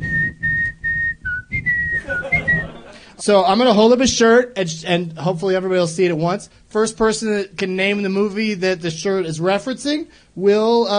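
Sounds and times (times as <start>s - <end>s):
person whistling a tune: 0.0s - 2.8s
laughter: 1.9s - 3.2s
speech: 3.2s - 10.9s.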